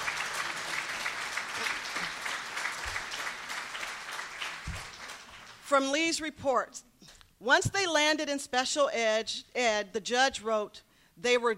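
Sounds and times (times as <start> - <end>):
audience applauding: 0.0 - 5.6
speech: 5.7 - 11.5.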